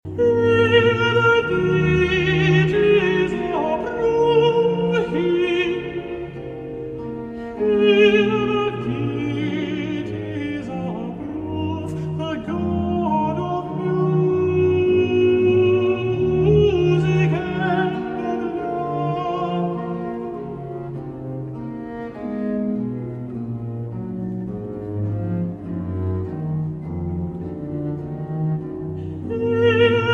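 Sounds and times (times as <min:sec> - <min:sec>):
ode and ritornello music: 0:00.1 - 0:30.1.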